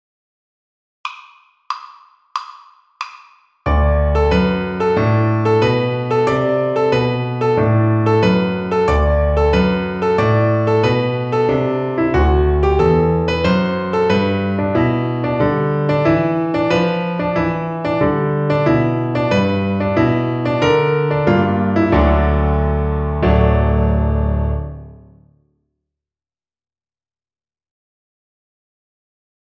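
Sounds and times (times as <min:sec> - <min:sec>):
piano accompaniment: 0:03.6 - 0:25.4.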